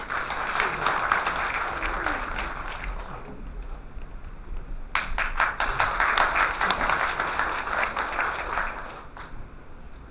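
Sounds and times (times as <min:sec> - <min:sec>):
audience applause: 0:00.0 - 0:03.4, 0:04.9 - 0:09.4.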